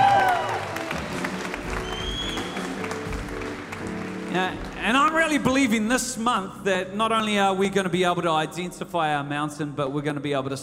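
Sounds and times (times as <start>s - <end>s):
whoops and cheers: 0.0s - 1.0s, 1.7s - 2.7s
audience clapping: 0.0s - 5.9s
speech: 4.4s - 10.6s.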